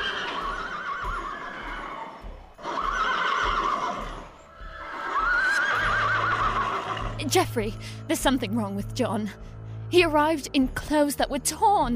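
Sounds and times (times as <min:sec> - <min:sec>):
hooves clip-clopping in a trot: 0:00.0 - 0:07.2
horses whinnying: 0:00.0 - 0:07.2
speech: 0:07.2 - 0:11.9.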